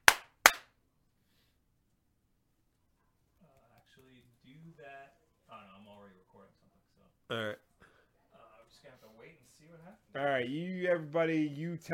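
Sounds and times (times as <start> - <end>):
hand claps: 0.0 - 0.7
speech: 4.0 - 7.6, 8.8 - 11.9.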